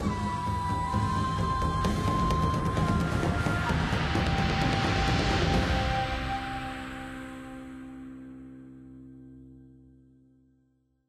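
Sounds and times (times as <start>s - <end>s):
swamp wave music: 0.0s - 9.3s.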